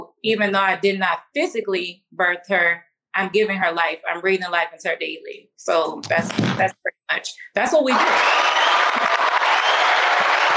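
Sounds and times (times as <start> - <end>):
speech: 0.2 - 8.8
applause sound effect from soundboard button: 7.9 - 10.5.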